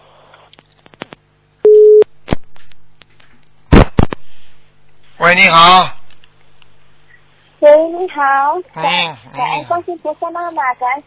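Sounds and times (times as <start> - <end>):
telephone call tone: 1.7 - 2.0
speech: 5.2 - 6.0, 7.6 - 11.0.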